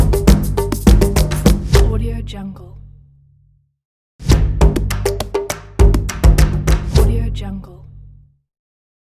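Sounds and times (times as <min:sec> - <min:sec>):
percussion drum line: 0:00.0 - 0:02.0, 0:04.2 - 0:07.2.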